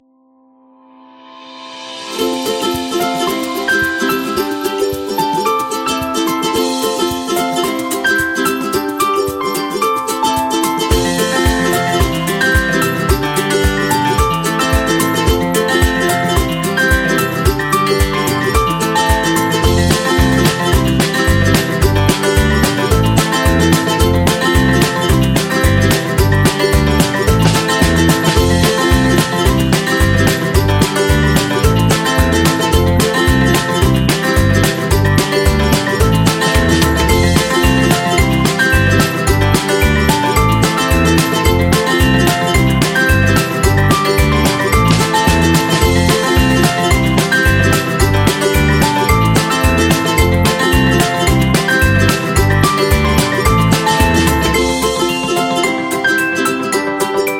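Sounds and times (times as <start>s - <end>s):
upbeat birthday music: 1.8s - 57.3s.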